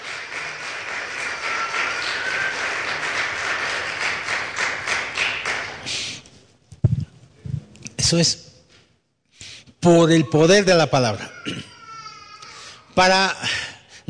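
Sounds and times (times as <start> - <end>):
applause: 0.0 - 6.2
speech: 8.1 - 8.5, 9.8 - 11.7, 13.0 - 14.0.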